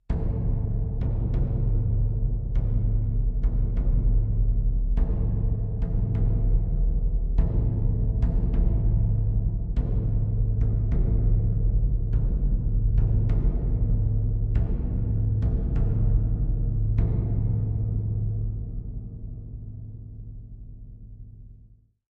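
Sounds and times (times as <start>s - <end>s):
deep scary tom drums in D: 0.1s - 20.3s.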